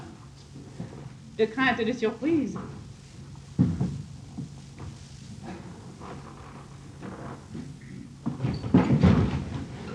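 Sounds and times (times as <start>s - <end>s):
speech: 1.4s - 2.8s
door clunking shut with a brief rattle: 8.3s - 9.7s.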